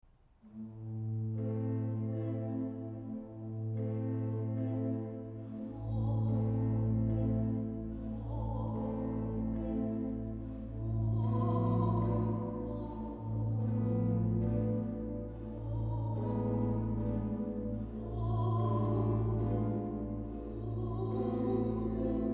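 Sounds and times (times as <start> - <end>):
organ playing an elegy: 0.5 - 22.3.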